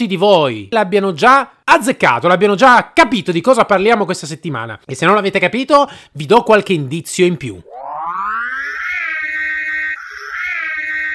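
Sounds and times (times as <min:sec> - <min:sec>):
speech: 0:00.0 - 0:07.9
Ecto-1 car siren wailing: 0:07.7 - 0:11.1.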